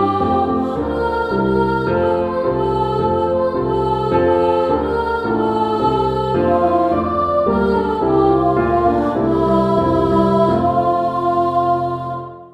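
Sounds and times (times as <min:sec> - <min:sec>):
children's chorus singing: 0:00.0 - 0:12.5
piano: 0:00.0 - 0:12.5.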